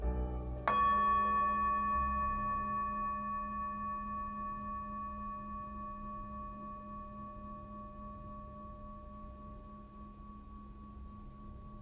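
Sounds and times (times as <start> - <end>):
Tibetan singing bowl struck and ringing: 0.0 - 11.8.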